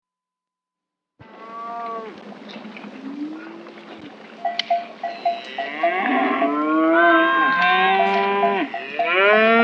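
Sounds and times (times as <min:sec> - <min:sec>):
cattle mooing: 0:01.2 - 0:04.2, 0:05.0 - 0:09.6.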